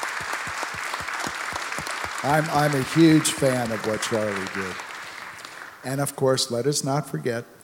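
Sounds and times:
audience applause: 0.0s - 5.8s
louder rhythmic claps: 0.0s - 5.9s
speech: 2.2s - 4.9s, 5.8s - 7.6s.

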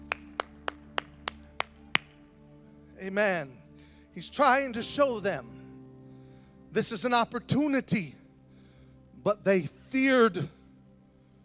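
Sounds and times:
hand clapping: 0.0s - 2.2s
speech: 3.0s - 3.6s, 4.2s - 5.6s, 6.7s - 8.2s, 9.2s - 10.6s.

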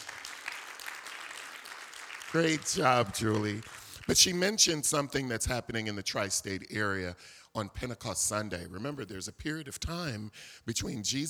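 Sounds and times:
church congregation applauding after a sermon announcement: 0.0s - 4.2s
speech: 2.3s - 11.2s.

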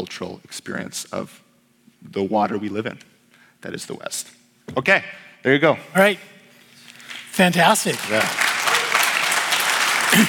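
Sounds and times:
speech: 0.0s - 1.4s, 2.0s - 6.3s, 7.4s - 8.5s
audience clapping: 7.0s - 10.2s.

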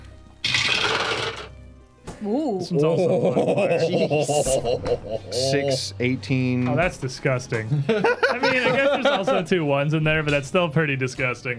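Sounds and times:
dice clattering: 0.4s - 1.5s
speech: 2.2s - 11.5s.

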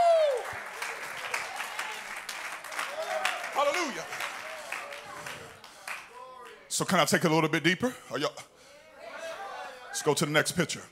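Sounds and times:
church congregation clapping during worship: 0.0s - 6.7s
speech: 6.8s - 8.5s, 10.0s - 10.9s.

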